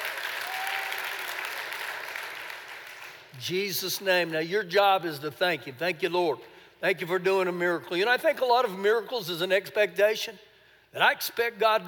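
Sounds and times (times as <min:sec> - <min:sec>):
audience applause: 0:00.0 - 0:03.3
speech: 0:03.4 - 0:11.8.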